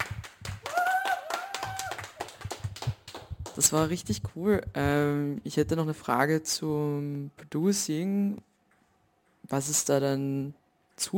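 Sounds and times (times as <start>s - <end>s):
audience clapping: 0.0s - 3.8s
speech: 3.6s - 8.5s, 9.5s - 11.1s.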